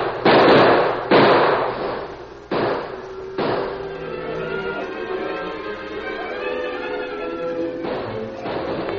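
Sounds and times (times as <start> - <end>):
gunshots in a shootout: 0.0 - 4.1, 7.8 - 8.9.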